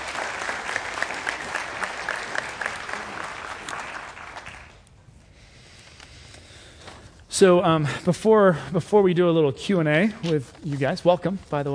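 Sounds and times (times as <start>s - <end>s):
audience applauding as two guests are welcomed to the stage: 0.0s - 4.9s
speech: 7.4s - 11.7s.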